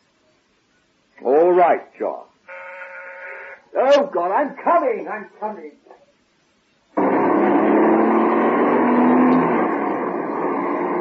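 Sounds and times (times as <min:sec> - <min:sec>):
speech: 0:01.2 - 0:02.3, 0:03.7 - 0:06.0
car engine roaring while driven fast: 0:07.0 - 0:10.9.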